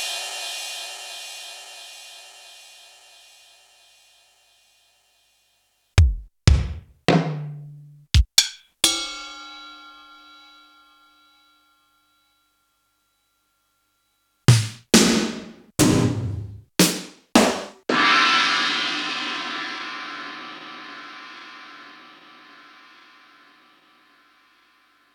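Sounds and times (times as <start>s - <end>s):
Roland U110 rock drums: 6.0s - 7.5s, 14.5s - 22.0s.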